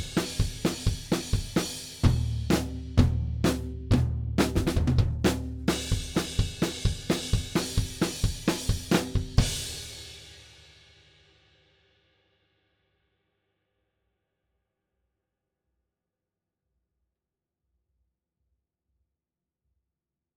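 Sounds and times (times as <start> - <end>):
drums: 0.0 - 11.8.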